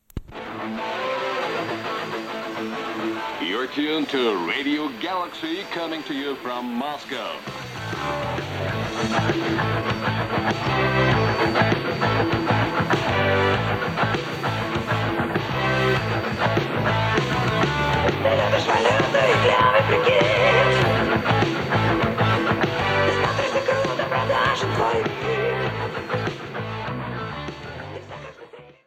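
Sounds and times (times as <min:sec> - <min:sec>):
radio: 0:00.4 - 0:26.3.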